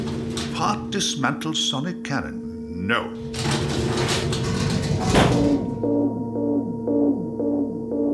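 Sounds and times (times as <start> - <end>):
clattering rummaging noise: 0.0 - 1.1, 3.2 - 5.8
speech: 0.6 - 4.2
sci-fi disturbance alarm pulses: 5.3 - 8.1.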